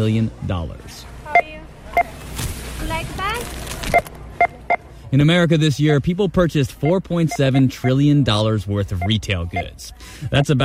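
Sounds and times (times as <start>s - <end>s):
speech: 0.0s - 1.1s, 5.1s - 10.6s
checkout scanner beeps in a checkout line: 1.3s - 2.2s, 3.8s - 4.9s, 6.7s - 8.2s, 8.8s - 10.6s.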